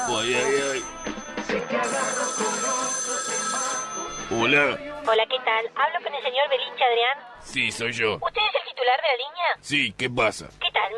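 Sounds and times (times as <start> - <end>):
electronic telephone ringtone for an incoming call: 0.0 - 5.0
speech: 0.1 - 2.5, 4.3 - 10.9.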